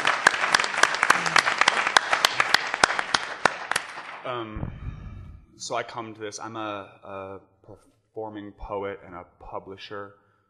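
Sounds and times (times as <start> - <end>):
crowd applauding: 0.0 - 4.5
speech: 4.3 - 4.8, 5.6 - 10.2.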